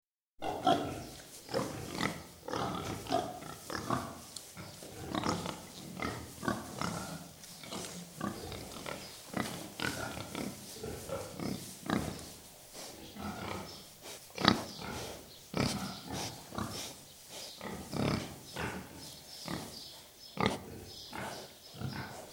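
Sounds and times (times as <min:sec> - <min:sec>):
pigs grunting and squealing in a shed: 0:00.4 - 0:19.8, 0:20.4 - 0:22.3.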